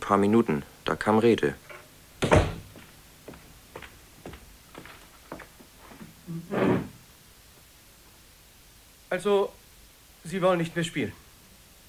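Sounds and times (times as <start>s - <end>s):
speech: 0.1s - 1.6s, 9.2s - 9.6s, 10.2s - 11.2s
door slammed shut: 2.2s - 2.8s.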